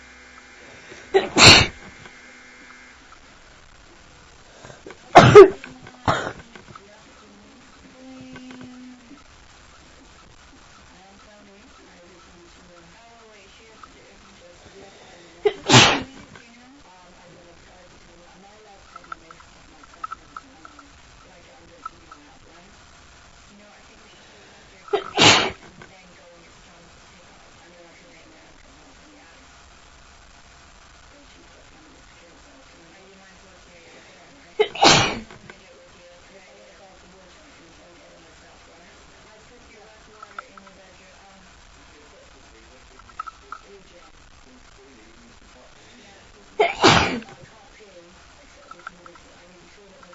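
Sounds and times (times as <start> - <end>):
woman sneezing: 0.9 - 1.9, 4.6 - 6.5, 15.4 - 16.2, 24.9 - 25.7, 34.6 - 35.4, 46.6 - 47.4.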